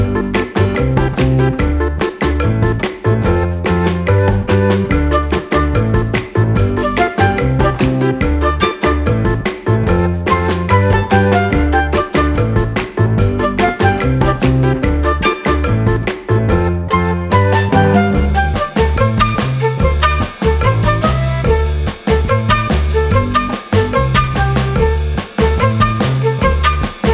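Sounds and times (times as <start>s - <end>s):
looping background music: 0.0s - 27.1s.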